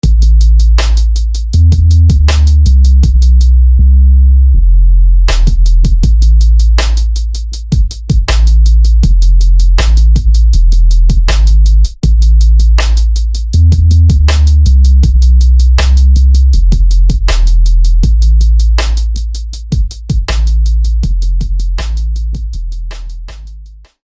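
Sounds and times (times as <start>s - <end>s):
bass: 0.0s - 24.0s.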